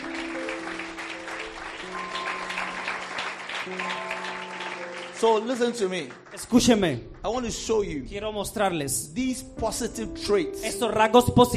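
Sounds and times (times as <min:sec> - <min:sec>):
congregation clapping hands at a church service: 0:00.0 - 0:07.8
sustained held musical tones: 0:00.0 - 0:11.5
speech: 0:03.7 - 0:04.0, 0:05.2 - 0:11.5.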